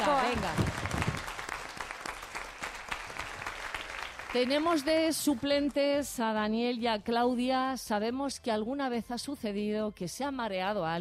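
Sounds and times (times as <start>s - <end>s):
applause for team members: 0.0s - 4.9s
speech: 4.4s - 10.9s.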